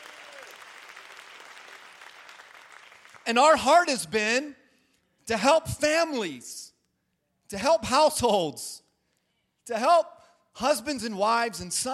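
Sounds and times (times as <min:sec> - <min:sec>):
audience applause: 0:00.0 - 0:03.2
speech: 0:03.3 - 0:04.6, 0:05.3 - 0:06.7, 0:07.5 - 0:08.8, 0:09.6 - 0:11.9.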